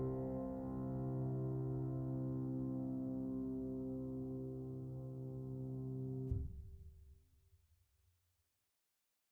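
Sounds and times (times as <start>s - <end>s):
piano piece: 0.0s - 6.3s.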